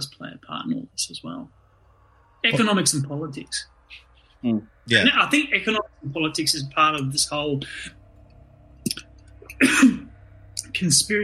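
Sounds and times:
speech: 2.4s - 8.0s, 9.6s - 10.1s, 10.8s - 11.2s
person coughing: 9.5s - 10.1s.

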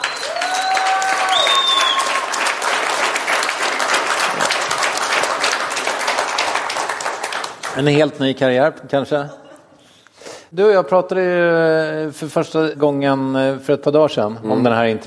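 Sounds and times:
audience applause: 0.0s - 8.0s
speech: 7.8s - 9.4s, 10.5s - 15.0s.

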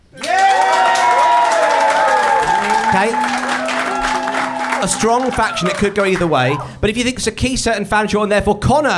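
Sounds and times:
studio audience clapping at a live show vote: 0.0s - 6.7s
studio audience whooping from many voices: 0.1s - 6.8s
speech: 3.0s - 3.4s, 4.8s - 8.9s.

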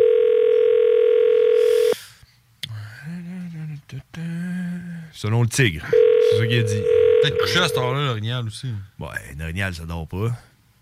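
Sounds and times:
telephone ringing tone: 0.0s - 2.0s, 5.9s - 8.0s
speech: 5.2s - 10.5s.

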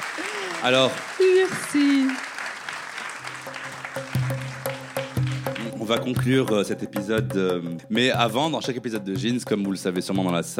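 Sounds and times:
audience applause: 0.0s - 6.0s
speech: 0.6s - 2.3s, 5.9s - 10.5s.

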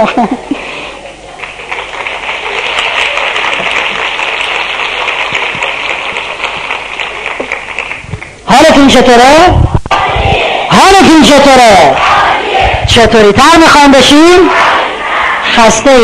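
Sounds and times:
speech: 0.0s - 0.7s, 8.9s - 12.3s, 12.9s - 14.8s, 15.6s - 16.0s
small group hand clapping: 1.4s - 8.5s.

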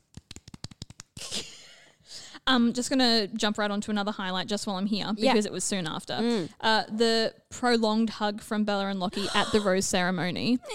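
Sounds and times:
hosts clapping hands: 0.0s - 1.2s
speech: 2.5s - 10.7s.

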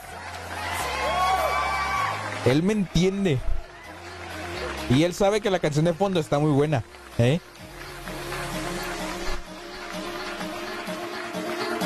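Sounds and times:
cheering: 0.0s - 6.3s
audience applause: 0.0s - 11.8s
speech: 2.4s - 3.5s, 4.9s - 7.6s.

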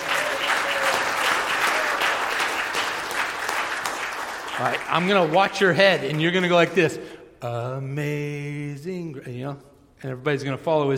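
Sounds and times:
crowd applauding: 0.0s - 6.8s
speech: 4.6s - 10.9s.

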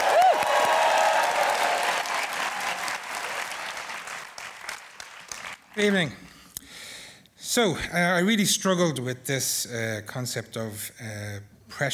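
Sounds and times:
audience applause at a Dublin storytelling slam: 0.0s - 5.8s
speech: 5.8s - 6.2s, 7.6s - 11.9s.

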